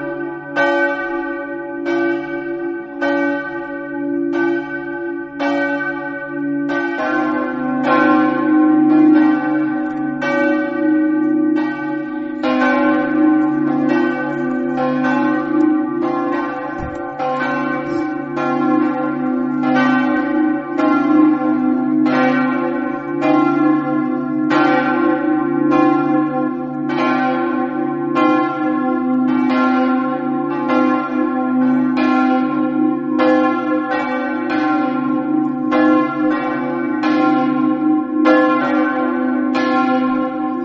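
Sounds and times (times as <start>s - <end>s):
bells ringing: 0.0s - 40.6s.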